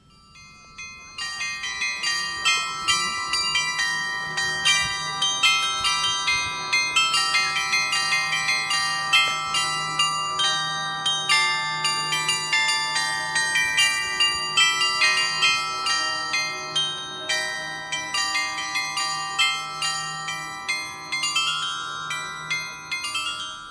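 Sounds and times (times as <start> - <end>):
carillon of bells playing a melody: 0.0 - 23.6.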